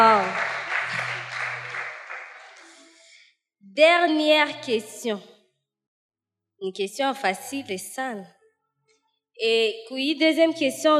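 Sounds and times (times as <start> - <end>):
church congregation applauding for a woman: 0.0 - 2.9
speech: 3.8 - 5.3, 6.6 - 8.4, 9.4 - 10.9.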